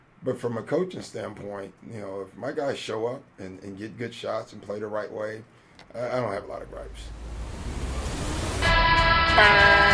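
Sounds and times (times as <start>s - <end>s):
speech: 0.2s - 7.4s, 9.4s - 9.9s
basketball game horn blast: 8.5s - 9.9s.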